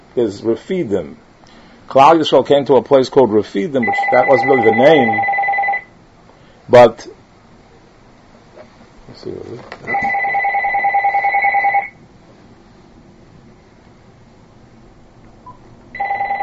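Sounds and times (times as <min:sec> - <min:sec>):
speech: 0:00.2 - 0:01.2, 0:01.9 - 0:05.3, 0:06.7 - 0:07.2, 0:09.2 - 0:10.0
telephone ringing: 0:03.8 - 0:05.9, 0:09.8 - 0:12.0, 0:15.9 - 0:16.4.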